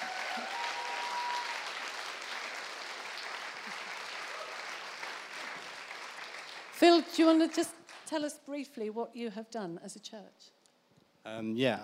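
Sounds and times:
audience round of applause: 0.0s - 7.0s
speech: 6.8s - 10.6s, 11.2s - 11.8s.

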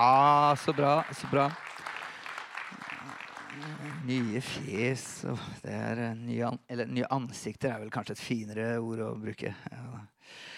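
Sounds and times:
speech: 0.0s - 1.7s, 3.6s - 10.5s
audience applause: 0.0s - 5.0s.

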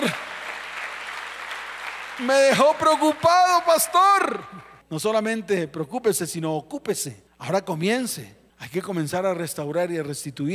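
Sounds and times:
audience applause: 0.0s - 4.3s
speech: 2.2s - 10.5s.

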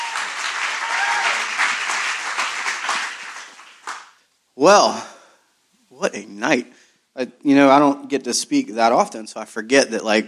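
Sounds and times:
audience clapping welcoming two speakers at an evening worship gathering: 0.0s - 4.2s
speech: 4.6s - 5.1s, 6.0s - 10.2s.

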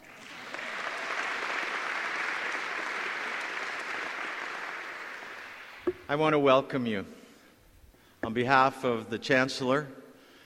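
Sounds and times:
audience applause for a student organist at a fall graduation ceremony: 0.0s - 6.0s
speech: 6.1s - 7.2s, 8.3s - 10.0s.

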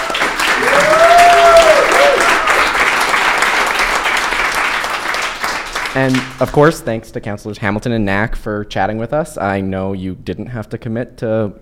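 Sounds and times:
audience applause: 0.0s - 6.4s
rising-and-falling whistle or whoop: 0.6s - 2.4s
speech: 6.0s - 11.6s.

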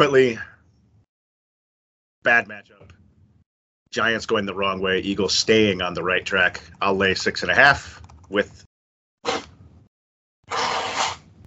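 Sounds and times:
speech: 0.0s - 0.5s, 2.2s - 3.0s, 3.9s - 8.7s
person blowing their nose: 10.5s - 11.3s.

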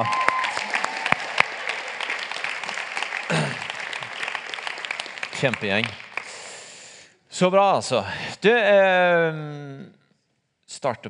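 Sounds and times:
audience applause: 0.0s - 7.0s
speech: 5.4s - 6.0s, 7.4s - 10.0s, 10.7s - 11.0s.

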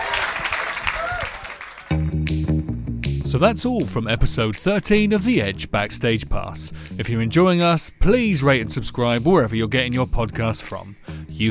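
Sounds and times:
audience applause: 0.0s - 2.0s
speech: 3.3s - 11.4s.

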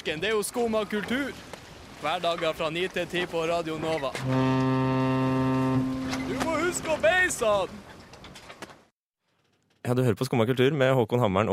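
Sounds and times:
speech: 0.0s - 5.9s, 6.7s - 7.9s, 9.8s - 11.5s
fishing boat horn hooting: 4.2s - 7.0s.

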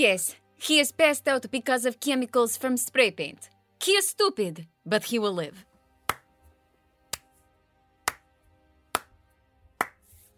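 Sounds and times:
speech: 0.0s - 5.7s
slow clap: 6.1s - 6.3s, 7.1s - 7.3s, 8.1s - 8.3s, 9.0s - 9.2s, 9.8s - 10.2s.

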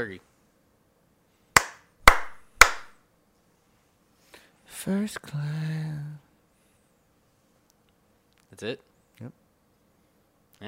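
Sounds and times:
speech: 0.0s - 0.3s, 4.8s - 6.2s, 8.6s - 9.4s
hand slaps and finger snaps: 1.6s - 3.0s.

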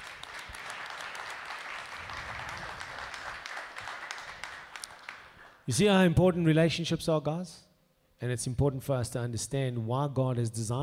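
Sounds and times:
audience applause: 0.0s - 5.6s
speech: 5.7s - 10.8s.

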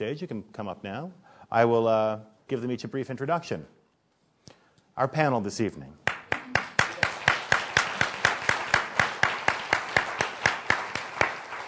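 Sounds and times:
speech: 0.0s - 3.8s, 5.0s - 6.1s
audience applauding: 6.1s - 11.6s.

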